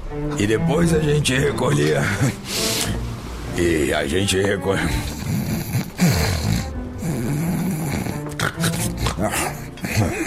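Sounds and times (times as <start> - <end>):
speech: 0.3 - 2.6, 3.6 - 5.4
loud snoring: 4.7 - 10.2.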